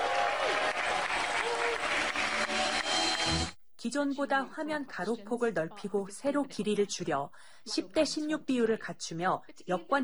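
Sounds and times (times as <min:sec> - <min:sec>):
audience cheering at Samsung Galaxy Z Fold 8 Unpacked launch in London: 0:00.0 - 0:03.5
speech: 0:03.8 - 0:10.0.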